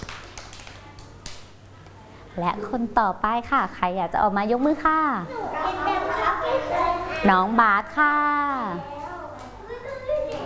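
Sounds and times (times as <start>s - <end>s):
children clapping: 0.0s - 1.5s, 8.9s - 9.6s, 10.2s - 10.4s
steady low hum: 0.0s - 10.4s
speech: 2.4s - 5.8s, 6.5s - 8.9s.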